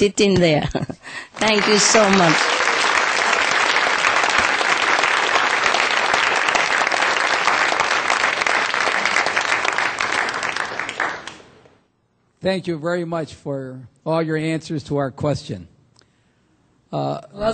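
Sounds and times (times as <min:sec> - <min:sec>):
speech: 0:00.0 - 0:02.6, 0:12.4 - 0:15.7, 0:16.9 - 0:17.5
crowd clapping: 0:01.3 - 0:11.8.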